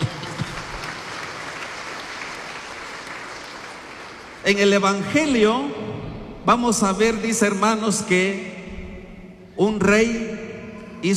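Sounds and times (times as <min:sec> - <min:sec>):
audience clapping: 0:00.0 - 0:04.7
speech: 0:04.4 - 0:05.8, 0:06.4 - 0:08.5, 0:09.6 - 0:10.3.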